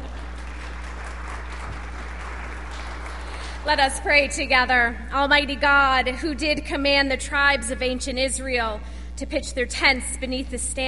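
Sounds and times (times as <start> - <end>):
audience clapping: 0.0 - 4.2
low electrical hum: 0.0 - 10.8
speech: 3.6 - 10.8.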